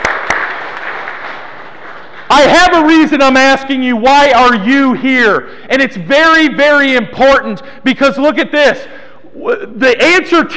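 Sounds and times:
audience applause: 0.0s - 2.5s
speech: 2.3s - 10.5s.

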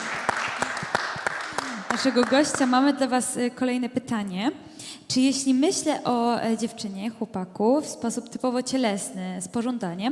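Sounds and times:
audience applause: 0.0s - 2.7s
speech: 2.0s - 10.1s.

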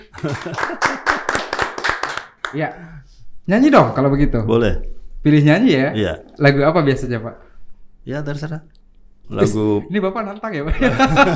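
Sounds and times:
laughter: 0.0s - 1.5s, 10.7s - 11.3s
clapping: 0.1s - 2.6s
speech: 0.2s - 1.4s, 2.5s - 11.3s.

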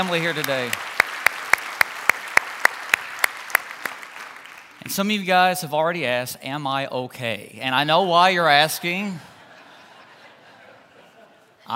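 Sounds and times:
speech: 0.0s - 0.8s, 4.8s - 9.3s
hand clapping: 0.0s - 5.0s
laughter: 8.9s - 11.7s.

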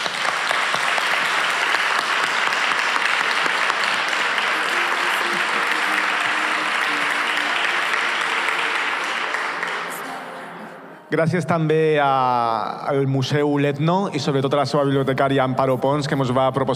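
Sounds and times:
audience applause: 0.0s - 10.8s
speech: 11.1s - 16.7s.

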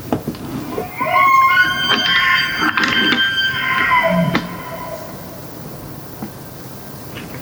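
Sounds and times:
elk bugling during the rut: 0.3s - 6.0s.

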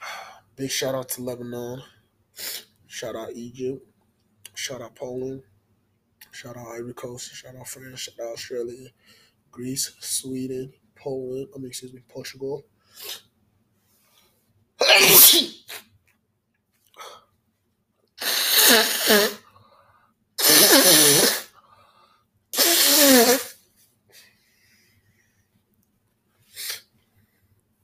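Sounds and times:
speech: 0.6s - 3.9s, 4.6s - 5.5s, 6.4s - 13.2s
person sniffing in a freezing basement: 2.4s - 2.7s, 12.9s - 13.3s, 14.0s - 15.8s, 18.2s - 19.5s, 20.4s - 21.7s, 22.6s - 25.0s, 26.4s - 27.0s.

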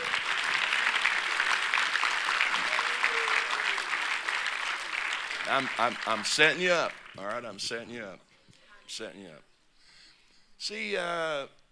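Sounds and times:
large group clapping hands: 0.0s - 7.4s
faint voice or cheer: 2.4s - 4.1s
speech: 5.5s - 8.3s, 8.9s - 9.5s, 10.6s - 11.6s.

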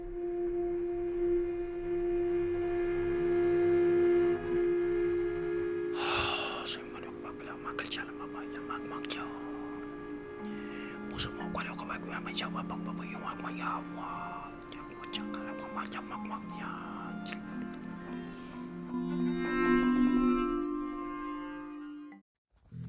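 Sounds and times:
steady low hum: 0.0s - 20.8s
voice imitating eerie whispering: 5.9s - 9.9s, 10.6s - 17.7s
speech: 12.3s - 14.2s, 15.2s - 17.4s.

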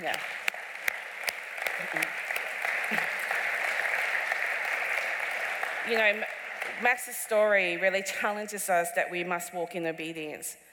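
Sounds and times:
speech: 0.0s - 0.4s, 1.8s - 2.2s, 2.9s - 3.1s, 5.8s - 10.6s
audience applause: 0.0s - 7.8s.

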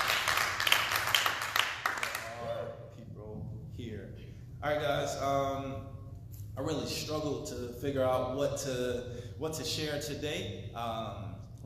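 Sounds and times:
crowd clapping hands: 0.0s - 2.5s
speech: 4.6s - 6.0s, 6.6s - 11.6s.

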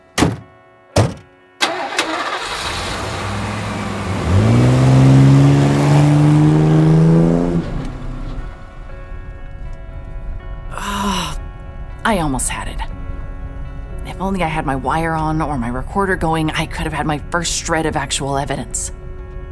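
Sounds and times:
sharp thuds: 0.0s - 1.3s
truck engine starting, revving and driving away: 0.0s - 8.8s
speech: 14.3s - 19.0s.

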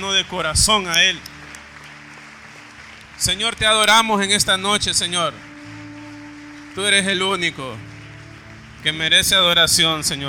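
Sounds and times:
speech: 0.0s - 1.3s, 3.2s - 5.5s, 6.8s - 7.9s, 8.8s - 10.2s
audience applause: 0.0s - 10.2s.

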